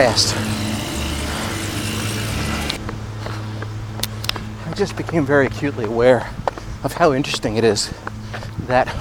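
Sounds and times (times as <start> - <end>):
speech: 0.0 - 0.6, 4.8 - 8.1, 8.7 - 9.0
lawn equipment running outside: 0.0 - 5.7.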